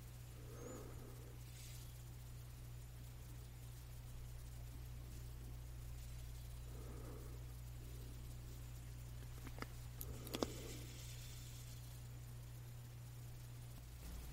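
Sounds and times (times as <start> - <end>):
steady low electrical hum: 0.0 - 14.3
scratching on a lamp: 8.9 - 12.0.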